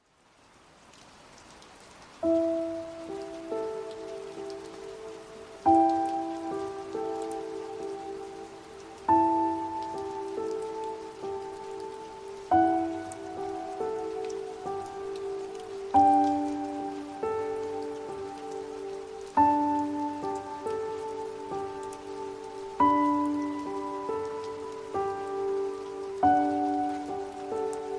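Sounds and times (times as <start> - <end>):
rain: 0.0 - 27.9.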